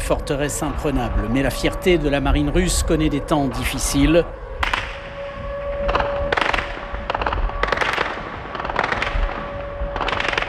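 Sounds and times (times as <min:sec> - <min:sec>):
speech: 0:00.1 - 0:04.4
anti-aircraft gunfire: 0:04.6 - 0:10.4.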